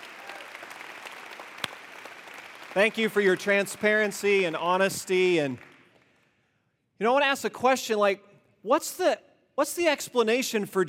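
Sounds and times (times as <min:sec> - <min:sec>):
round of applause: 0:00.0 - 0:06.3
speech: 0:02.8 - 0:05.7, 0:07.0 - 0:10.8.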